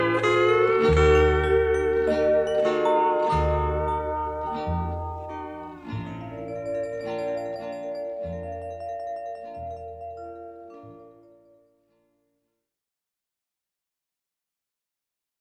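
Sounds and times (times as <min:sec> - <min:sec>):
Hawaiian guitar: 0:00.0 - 0:11.4.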